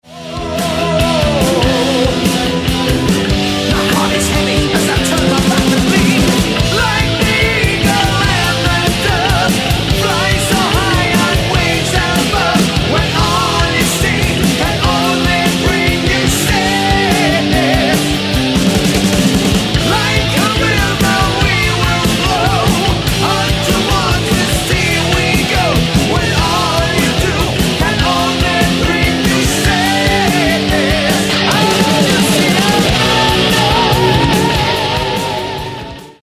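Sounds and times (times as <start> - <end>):
chorus singing: 0.0 - 36.2.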